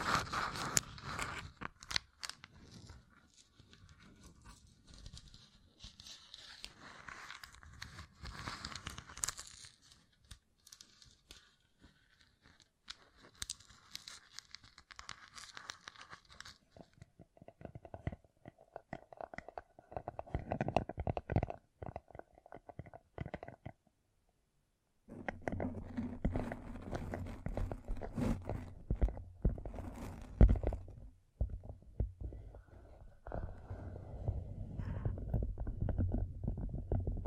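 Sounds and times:
gem-covered fingertips tapping and scratching: 0.0 - 23.9, 25.1 - 33.7, 34.8 - 37.2.

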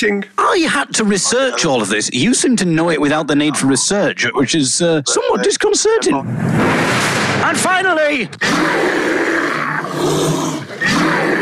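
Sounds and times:
speech: 0.0 - 11.4
brown bear roaring: 8.4 - 11.4.

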